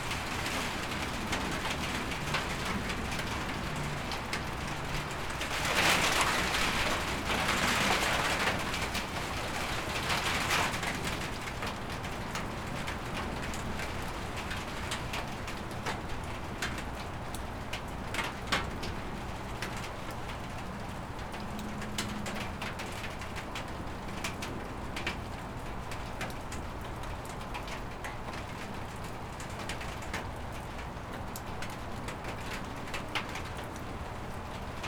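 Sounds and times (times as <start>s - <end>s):
rain on carport: 0.0s - 34.8s.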